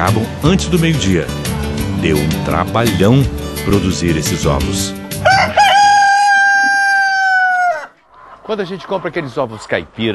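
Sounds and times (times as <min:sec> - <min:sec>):
speech: 0:00.0 - 0:01.4, 0:02.0 - 0:05.6, 0:08.5 - 0:10.1
rooster crowing on a small organic egg farm: 0:05.2 - 0:08.0.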